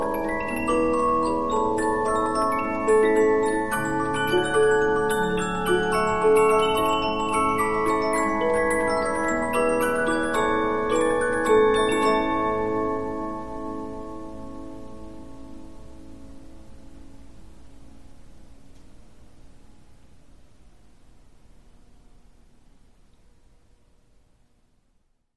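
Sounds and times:
15-inch disc music box playing: 0:00.0 - 0:14.2.

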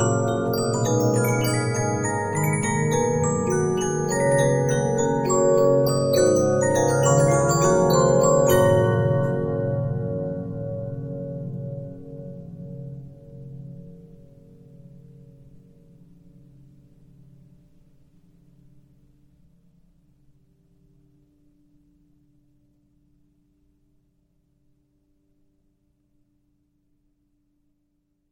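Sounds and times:
Regina 15-inch disc music box: 0:00.0 - 0:11.0.

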